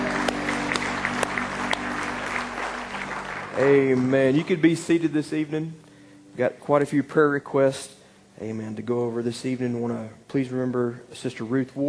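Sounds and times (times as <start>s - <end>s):
church congregation applauding in praise: 0.0s - 5.5s
speech: 3.6s - 5.8s, 6.4s - 11.8s.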